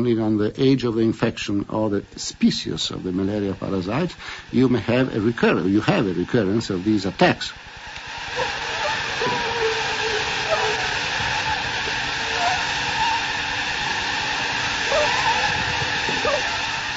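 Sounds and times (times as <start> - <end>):
speech: 0.0 - 7.7
malaria mosquitoes buzzing in a container: 8.3 - 16.9.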